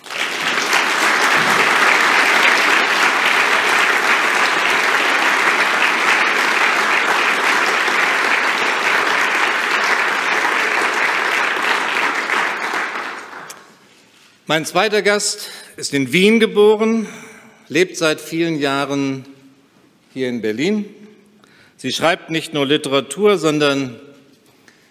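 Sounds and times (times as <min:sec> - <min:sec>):
audience applause welcoming Salman Rushdie at a literary event in Berlin: 0:00.0 - 0:13.7
speech: 0:14.5 - 0:19.3, 0:20.2 - 0:21.0, 0:21.8 - 0:24.1.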